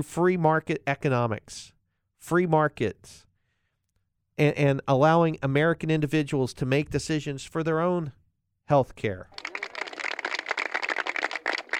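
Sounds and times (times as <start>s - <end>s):
speech: 0.0s - 3.3s, 4.4s - 9.4s
golf clap sound effect: 9.3s - 11.7s.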